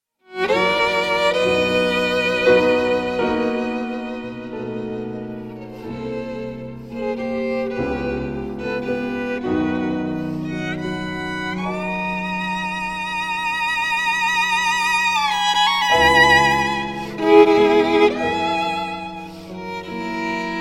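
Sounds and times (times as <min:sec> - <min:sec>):
violin and piano piece: 0:00.2 - 0:20.5.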